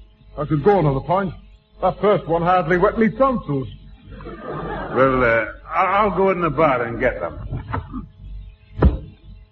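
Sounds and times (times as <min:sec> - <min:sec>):
speech: 0:00.4 - 0:03.8, 0:05.0 - 0:07.6
laughter: 0:04.1 - 0:06.2
tapping on a side door: 0:08.8 - 0:09.2.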